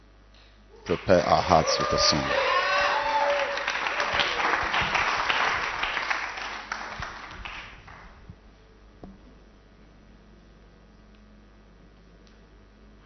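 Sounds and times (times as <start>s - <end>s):
audience applause: 0.8s - 8.2s
speech: 0.9s - 2.6s.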